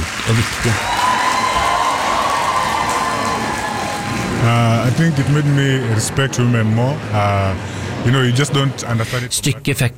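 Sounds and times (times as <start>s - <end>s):
theatre audience cheering and applauding: 0.0s - 6.0s
speech: 0.3s - 1.0s, 4.4s - 9.9s.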